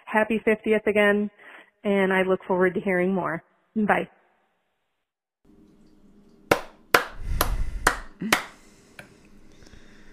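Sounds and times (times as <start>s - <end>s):
speech: 0.1s - 4.2s
applause, hands clapping: 6.5s - 8.6s.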